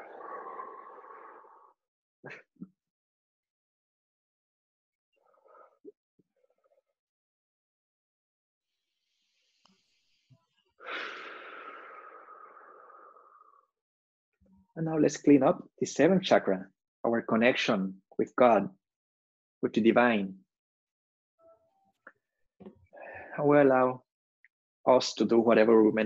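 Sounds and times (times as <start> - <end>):
slow breathing in and out during a guided chakra meditation: 0.0 - 1.8, 10.8 - 13.7, 22.9 - 23.4
speech: 2.2 - 2.7, 14.8 - 18.8, 19.6 - 20.4, 23.4 - 24.0, 24.8 - 26.0.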